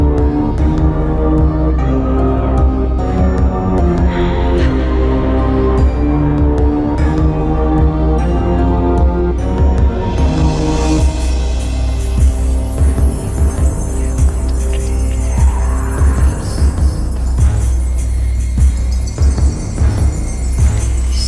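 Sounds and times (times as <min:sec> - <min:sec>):
dark magic background music: 0:00.0 - 0:21.2.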